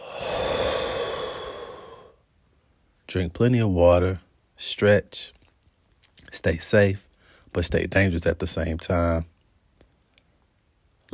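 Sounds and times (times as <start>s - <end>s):
long breathy exhale: 0.0s - 2.2s
speech: 3.1s - 5.4s, 6.3s - 9.3s.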